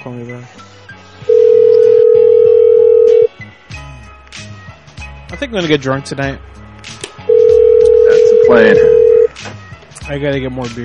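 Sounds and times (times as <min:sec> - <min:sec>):
speech: 0:00.1 - 0:00.8, 0:05.4 - 0:06.6, 0:08.5 - 0:09.1, 0:10.1 - 0:10.8
telephone tone at the end of a voicemail call: 0:01.3 - 0:03.3, 0:07.3 - 0:09.3.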